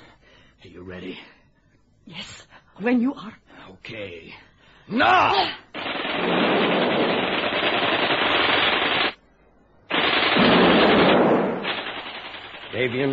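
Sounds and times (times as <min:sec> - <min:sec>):
speech: 0:00.6 - 0:01.4, 0:02.0 - 0:06.6, 0:12.8 - 0:13.1
rapid gunfire: 0:05.7 - 0:09.2, 0:09.9 - 0:13.1.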